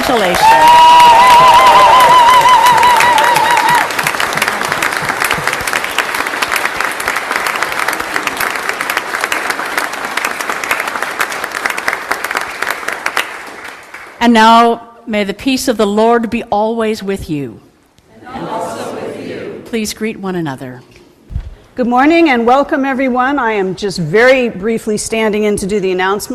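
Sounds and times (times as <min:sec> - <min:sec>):
speech: 0:00.0 - 0:01.8, 0:14.2 - 0:17.6, 0:19.7 - 0:20.9, 0:21.8 - 0:26.3
audience applauding newly confirmed members: 0:00.0 - 0:14.2.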